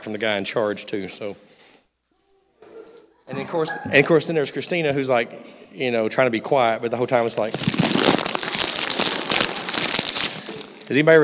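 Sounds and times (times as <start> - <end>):
speech: 0.0 - 1.6, 3.3 - 7.8, 10.9 - 11.2
voice imitating a candy wrapper being slowly unwrapped: 7.3 - 11.0.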